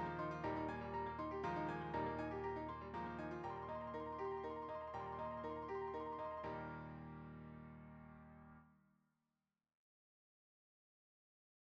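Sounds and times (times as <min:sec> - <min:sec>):
piano: 0:00.0 - 0:08.7.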